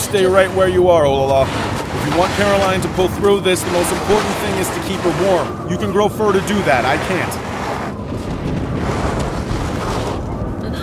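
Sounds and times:
thunder: 0.0 - 10.8
speech: 0.1 - 7.5.

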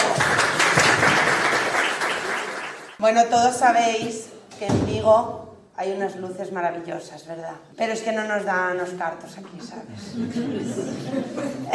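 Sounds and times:
audience applause: 0.0 - 3.0
speech: 3.0 - 11.7
laughter: 9.6 - 11.7.

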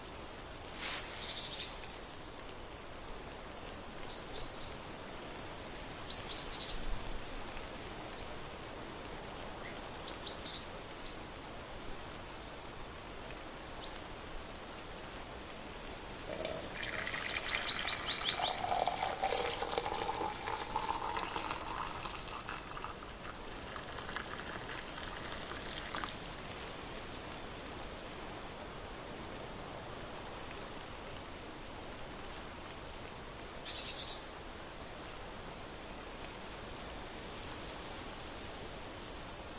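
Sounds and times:
steady dense outdoor hiss on an autumn porch: 0.0 - 39.5
small high chirps from birds or insects: 16.1 - 20.6.

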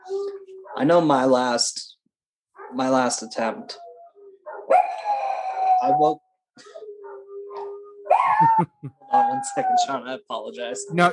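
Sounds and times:
dogs barking: 0.0 - 1.2, 2.6 - 9.8
speech: 0.1 - 1.9, 2.7 - 3.8, 5.8 - 6.8, 8.4 - 11.1.

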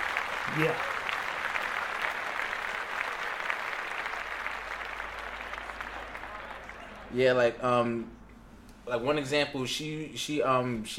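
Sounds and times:
people clapping hands: 0.0 - 7.2
speech: 0.5 - 0.9, 7.1 - 8.2, 8.9 - 10.9.

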